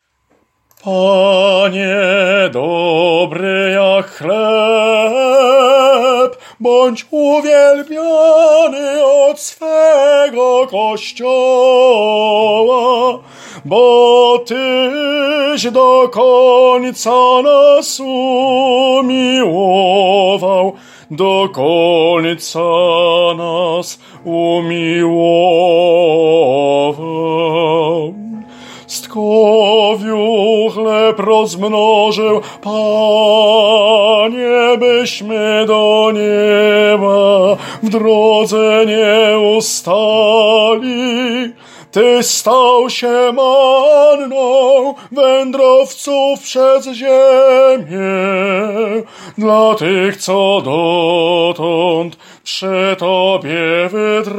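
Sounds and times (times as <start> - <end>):
tenor singing: 0.4 - 54.3.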